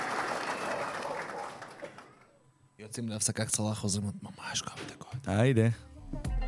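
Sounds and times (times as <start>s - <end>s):
applause: 0.0s - 2.4s
speech: 2.8s - 6.3s.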